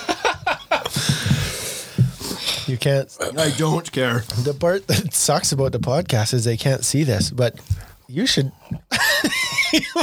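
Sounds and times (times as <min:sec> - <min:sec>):
laughter: 0:00.0 - 0:01.6, 0:08.9 - 0:10.0
man blowing his nose into a napkin: 0:00.0 - 0:02.8
speech: 0:02.7 - 0:08.8, 0:09.7 - 0:10.0.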